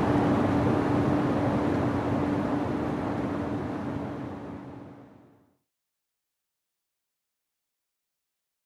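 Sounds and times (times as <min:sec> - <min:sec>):
SUV interior accelerating to 100 mph: 0:00.0 - 0:05.4.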